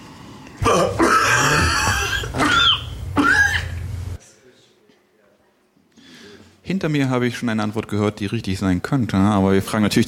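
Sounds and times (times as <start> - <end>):
person coughing: 0.6 - 3.7
speech: 6.8 - 10.0.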